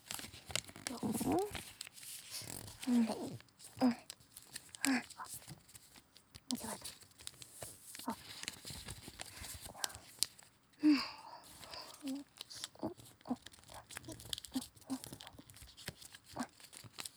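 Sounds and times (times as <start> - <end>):
origami paper sounds: 0.0 - 17.1.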